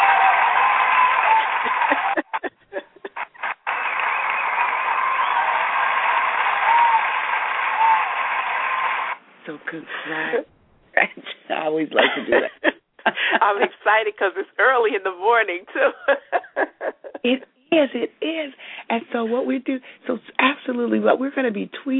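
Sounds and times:
laughter: 0:00.0 - 0:08.0, 0:12.0 - 0:14.0, 0:15.7 - 0:17.4
audience applause: 0:00.0 - 0:09.2
speech: 0:09.7 - 0:10.5, 0:11.1 - 0:16.3, 0:17.2 - 0:21.9.

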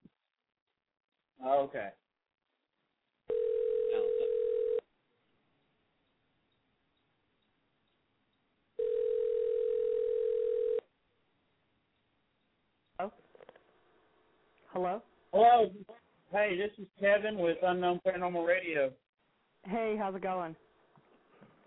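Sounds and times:
speech: 0:01.4 - 0:02.0, 0:13.0 - 0:13.4, 0:14.8 - 0:19.0, 0:19.6 - 0:20.6
telephone tone on an outgoing call: 0:03.3 - 0:04.8, 0:08.8 - 0:10.8.

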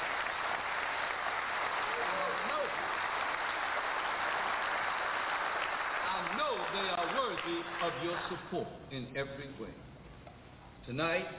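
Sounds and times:
audience applause: 0:00.0 - 0:08.4
speech: 0:07.6 - 0:09.9, 0:10.9 - 0:11.3.

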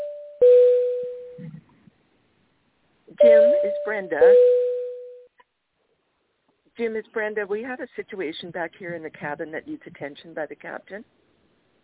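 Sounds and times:
Boeing 727-200 cabin crew call chime: 0:03.2 - 0:04.6
speech: 0:03.2 - 0:04.6, 0:06.8 - 0:11.2.

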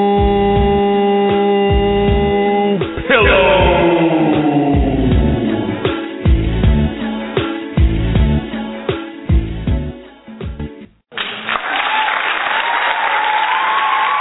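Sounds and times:
rhythmic music with a heavy beat: 0:00.2 - 0:10.8
studio audience applause on a radio show: 0:11.1 - 0:14.1.

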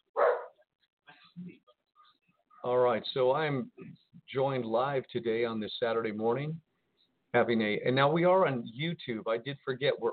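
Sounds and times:
dog barking: 0:00.2 - 0:00.6
speech: 0:02.6 - 0:06.7, 0:07.3 - 0:10.1.

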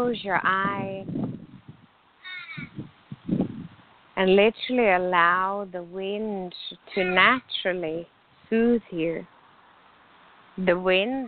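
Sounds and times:
speech: 0:00.0 - 0:01.4, 0:04.2 - 0:09.3, 0:10.6 - 0:11.2
bird calling outdoors: 0:02.2 - 0:02.8.

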